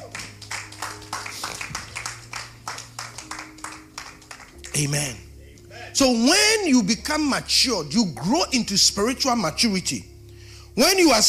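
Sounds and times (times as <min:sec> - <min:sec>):
audience clapping hands: 0:00.0 - 0:05.2
sustained low musical drone: 0:00.0 - 0:11.2
speech: 0:04.8 - 0:05.2, 0:06.0 - 0:10.1, 0:10.8 - 0:11.2.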